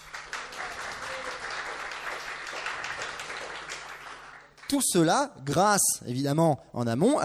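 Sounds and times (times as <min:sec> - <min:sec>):
audience applause: 0:00.0 - 0:04.8
speech: 0:04.7 - 0:07.2.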